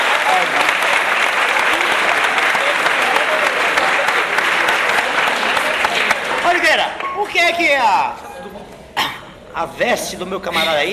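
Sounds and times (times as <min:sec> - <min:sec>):
audience applause: 0:00.0 - 0:07.9
speech: 0:07.5 - 0:08.6, 0:09.6 - 0:10.9.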